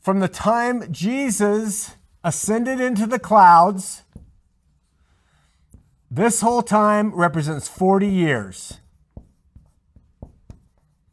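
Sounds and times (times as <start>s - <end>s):
speech: 0.0s - 4.0s, 6.1s - 8.8s
handwriting pen strokes: 4.0s - 6.1s, 8.2s - 11.1s.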